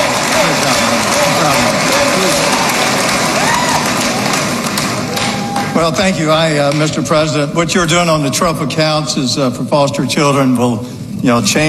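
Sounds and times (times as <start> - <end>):
audience applause: 0.0 - 7.4
speech: 5.8 - 11.6.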